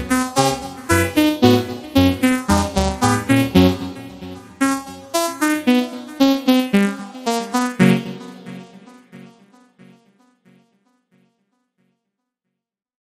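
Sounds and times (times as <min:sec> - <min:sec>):
melody: 0:00.0 - 0:09.3.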